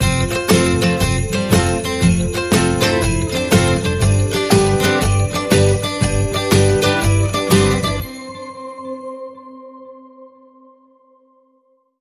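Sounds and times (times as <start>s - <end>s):
ukulele Christmas song: 0.0s - 8.8s.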